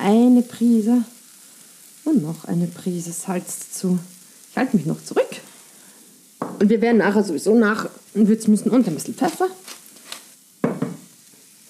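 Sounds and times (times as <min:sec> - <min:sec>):
speech: 0:00.0 - 0:01.2, 0:02.0 - 0:05.5, 0:06.6 - 0:09.7
salted and peppered button mushrooms and onion sizzling in a pan: 0:00.0 - 0:11.6
utensil stirring and scraping the mushroom mixture in a pan: 0:09.2 - 0:10.4.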